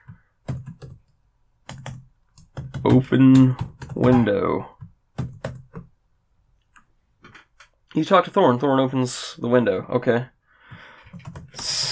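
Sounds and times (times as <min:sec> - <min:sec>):
keyboard typing a command: 0:00.4 - 0:05.9, 0:11.1 - 0:11.9
speech: 0:02.8 - 0:04.7, 0:08.0 - 0:10.4.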